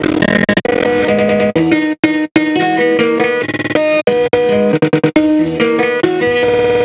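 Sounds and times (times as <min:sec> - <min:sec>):
guitar: 0:00.0 - 0:06.8.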